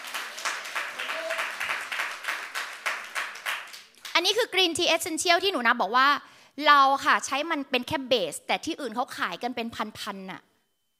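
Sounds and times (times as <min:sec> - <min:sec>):
applause, hands clapping: 0:00.0 - 0:04.2
speech: 0:04.2 - 0:10.5.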